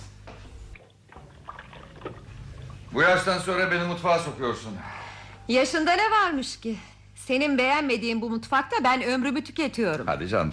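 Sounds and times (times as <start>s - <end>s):
kitchen tap water running while hands are washed: 0.7s - 4.0s
speech: 3.0s - 10.5s.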